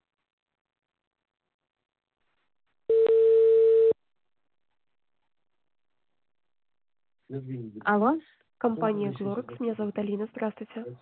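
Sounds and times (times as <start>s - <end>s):
telephone ringback tone while a call connects: 2.9s - 4.0s
speech: 7.3s - 11.0s.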